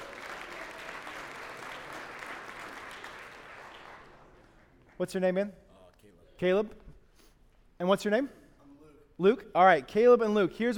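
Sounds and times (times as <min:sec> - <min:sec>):
audience round of applause: 0:00.0 - 0:05.0
speech: 0:05.0 - 0:05.6, 0:06.4 - 0:06.8, 0:07.8 - 0:08.4, 0:09.2 - 0:10.7.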